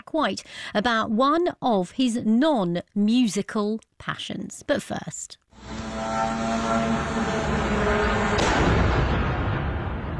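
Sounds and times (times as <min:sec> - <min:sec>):
speech: 0:00.1 - 0:05.8
Russian drone crashing into Romanian apartment block: 0:06.9 - 0:10.1.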